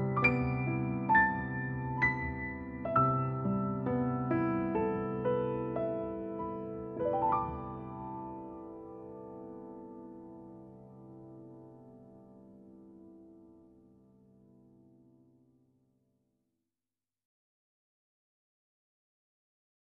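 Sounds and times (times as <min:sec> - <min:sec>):
piano piece: 0:00.0 - 0:15.7.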